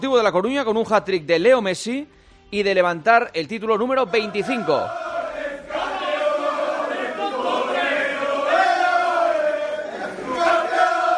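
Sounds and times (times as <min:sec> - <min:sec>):
speech: 0:00.0 - 0:05.0
football players chanting in a locker room: 0:04.0 - 0:11.1.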